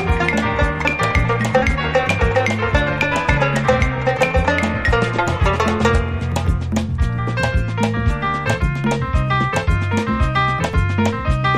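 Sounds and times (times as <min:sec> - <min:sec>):
xylophone: 0:00.0 - 0:09.0
banjo: 0:00.0 - 0:11.5.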